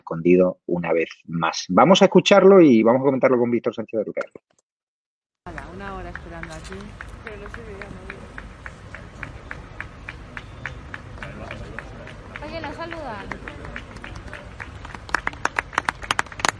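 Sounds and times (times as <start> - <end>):
speech: 0.1 - 4.6, 5.5 - 8.2
crowd clapping: 5.4 - 16.5
busy murmur: 5.5 - 15.6.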